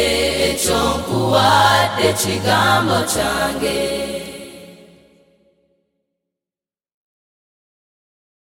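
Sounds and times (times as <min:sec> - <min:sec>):
choir singing: 0:00.0 - 0:05.5.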